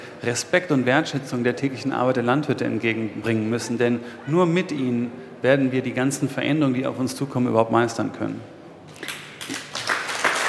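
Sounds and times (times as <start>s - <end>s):
speech: 0.2s - 8.6s
audience applause: 9.0s - 10.4s.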